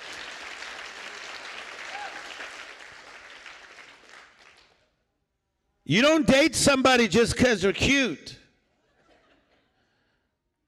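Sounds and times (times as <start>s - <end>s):
audience clapping hands: 0.0s - 4.9s
speech: 5.9s - 8.4s.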